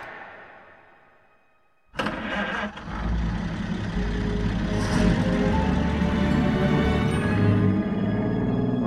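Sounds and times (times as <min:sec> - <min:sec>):
car engine roaring as a journalist drives the car: 0:02.0 - 0:08.8.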